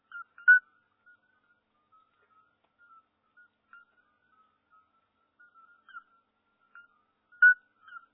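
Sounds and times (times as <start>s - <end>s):
chorus of toads piping: 0.0s - 1.3s, 5.4s - 8.1s.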